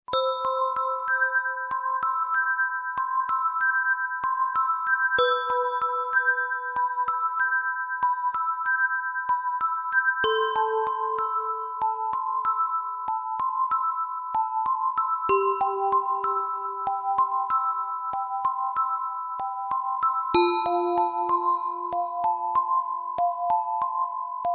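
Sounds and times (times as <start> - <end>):
music box: 0.1 - 24.5.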